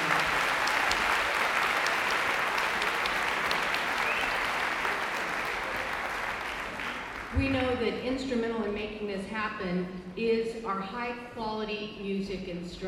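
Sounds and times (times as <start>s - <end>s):
applause for students: 0.0s - 7.4s
speech: 7.4s - 12.8s.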